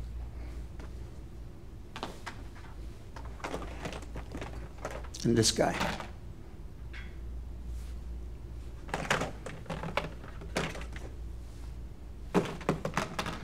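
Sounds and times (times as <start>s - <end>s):
hum: 0.0s - 13.4s
plastic tubs handled and set down: 3.2s - 5.1s, 8.8s - 11.1s, 12.3s - 13.4s
speech: 5.2s - 6.0s.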